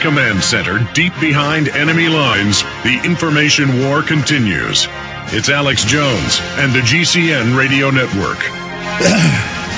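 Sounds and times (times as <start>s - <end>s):
speech: 0.0s - 9.6s
person coughing into a microphone: 9.0s - 9.6s.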